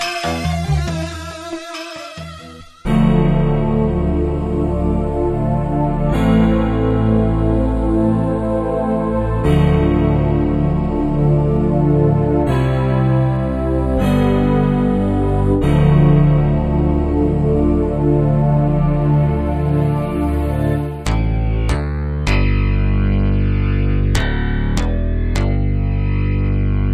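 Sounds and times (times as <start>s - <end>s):
Wavestation synthesizer: 0.0s - 26.9s.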